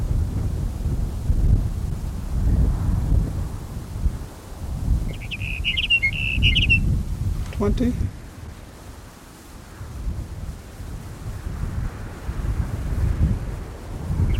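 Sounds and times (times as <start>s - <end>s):
strong wind buffeting the microphone: 0.0s - 14.3s
bird chirping: 5.1s - 6.9s, 14.2s - 14.3s
speech: 7.6s - 8.2s.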